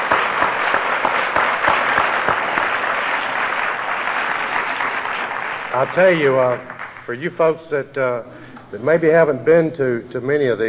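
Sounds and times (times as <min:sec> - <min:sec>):
audience applause: 0:00.0 - 0:07.2
speech: 0:05.8 - 0:10.6.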